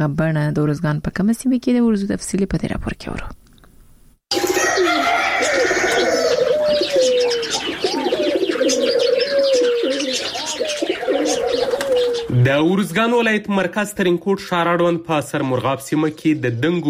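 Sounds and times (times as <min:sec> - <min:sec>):
speech: 0:00.0 - 0:03.4, 0:12.4 - 0:16.8
pigeons cooing: 0:04.3 - 0:12.4
birds calling in a bird zoo in Uruzgan province: 0:04.3 - 0:13.0, 0:15.4 - 0:16.8.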